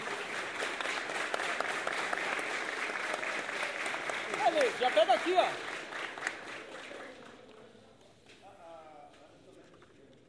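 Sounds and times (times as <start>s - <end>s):
audience applause: 0.0s - 7.4s
speech: 4.6s - 5.7s.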